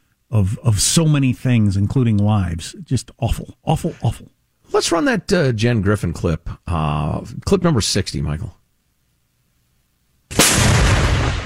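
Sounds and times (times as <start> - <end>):
speech: 0.3 - 8.6
Ukrainian tank firing toward Russian positions in the Donbass: 10.3 - 11.4.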